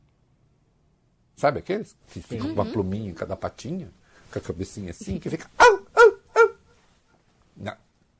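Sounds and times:
speech: 1.4 - 5.8, 7.6 - 7.8
small dog yapping: 5.6 - 6.6.

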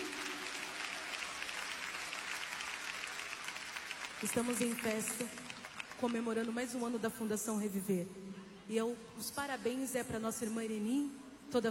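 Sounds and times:
audience applauding: 0.0 - 6.6
speech: 4.2 - 11.6.

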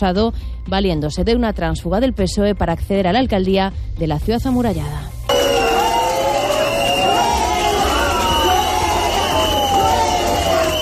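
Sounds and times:
speech: 0.0 - 5.2
protesting crowd chanting in town square: 5.3 - 10.7.

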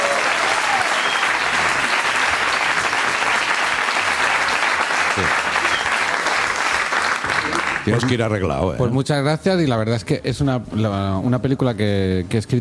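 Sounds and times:
audience applause: 0.0 - 8.2
speech: 7.9 - 12.5.

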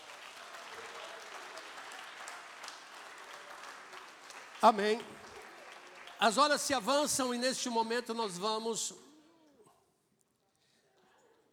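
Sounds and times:
audience applause: 0.0 - 7.4
speech: 4.6 - 5.2, 6.2 - 9.0.

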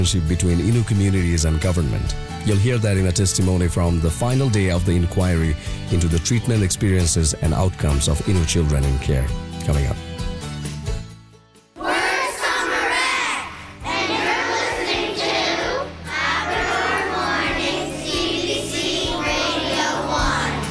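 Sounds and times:
speech: 0.0 - 10.0
children shouting and cheering: 11.8 - 20.6.

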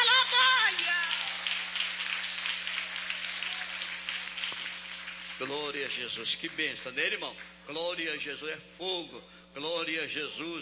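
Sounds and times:
audience clapping hands: 0.0 - 7.6
low electrical hum: 0.0 - 10.5
speech: 5.4 - 10.5.

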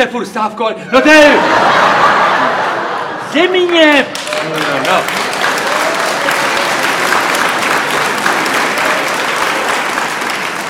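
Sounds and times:
speech: 0.0 - 2.2, 3.3 - 5.3
laughter: 1.0 - 5.9
applause: 3.6 - 10.6.

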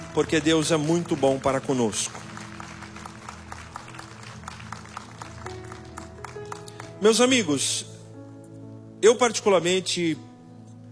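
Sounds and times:
audience applauding: 0.0 - 7.3
speech: 0.2 - 2.3, 7.0 - 7.9, 9.0 - 10.3.

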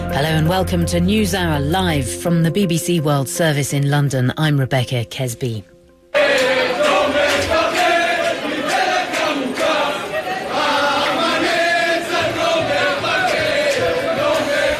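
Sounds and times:
speech: 0.2 - 5.7
jubilant crowd singing and chanting at Ben Gurion Airport in Tel Aviv: 6.1 - 14.7.

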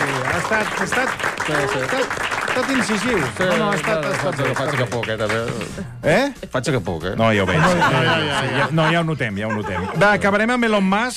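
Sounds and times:
audience applause: 0.0 - 5.8
speech: 0.5 - 11.1
laughter: 7.3 - 10.6.

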